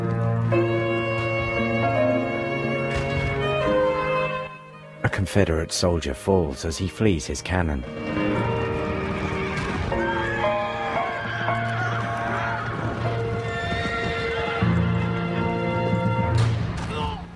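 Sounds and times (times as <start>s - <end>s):
hooves clattering and thumping in a Civil War cavalry battle: 0.0s - 4.3s, 7.8s - 17.2s
speech: 5.2s - 8.2s
horses whinnying and neighing in a Civil War cavalry battle: 8.3s - 16.3s
people shouting in a Civil War cavalry battle: 9.2s - 14.8s, 16.8s - 17.3s.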